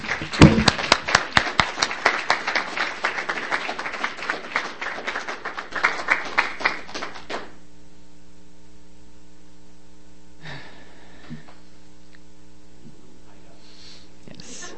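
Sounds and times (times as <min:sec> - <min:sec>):
audience applause for a poet: 0:00.0 - 0:07.6.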